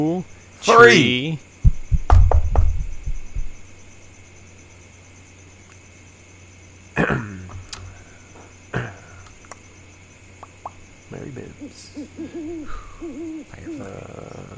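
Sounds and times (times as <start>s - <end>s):
speech: 0.0s - 1.5s
knocking: 1.7s - 3.0s.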